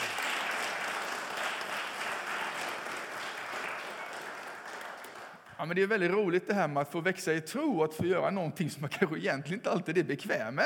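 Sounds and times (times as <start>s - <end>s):
audience applause: 0.0s - 5.5s
speech: 5.6s - 10.6s.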